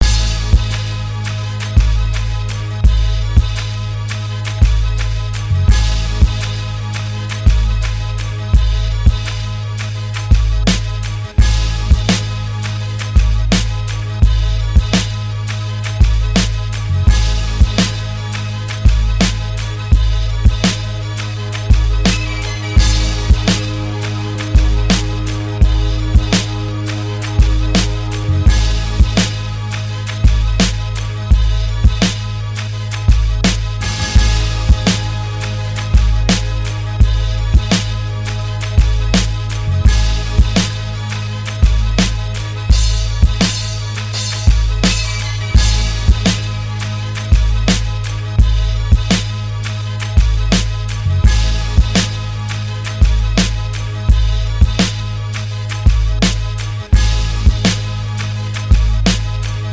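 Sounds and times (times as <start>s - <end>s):
music beat: 0.0s - 59.7s.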